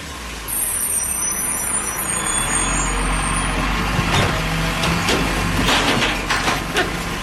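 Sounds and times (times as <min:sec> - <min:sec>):
garbage truck engine rumble: 0:00.0 - 0:07.2
garbage truck air brakes hissing squeal: 0:00.5 - 0:03.6
garbage truck machinery clanks and bangs: 0:04.0 - 0:07.2.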